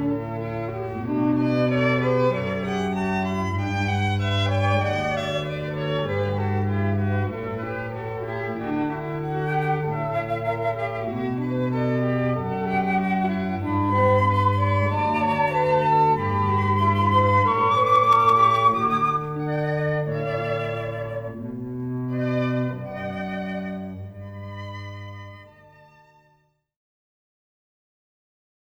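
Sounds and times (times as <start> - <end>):
flute: 0.0 - 25.6
violin: 0.0 - 26.4
cello: 0.0 - 26.5.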